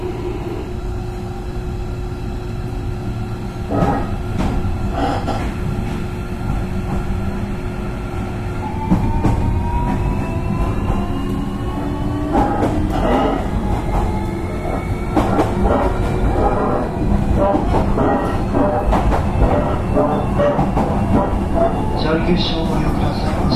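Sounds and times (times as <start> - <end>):
JR Kyushu 305 series electric train wheels and motor rumble: 0.0 - 23.5
sharp clanks and rail joint knocks: 12.3 - 21.9.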